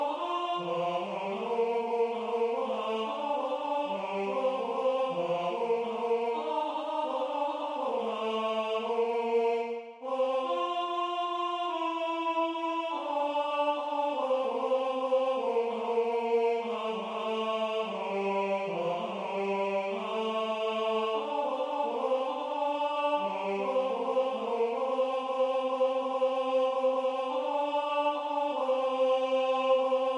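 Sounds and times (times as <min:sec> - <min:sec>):
tenor singing: 0:00.0 - 0:30.1.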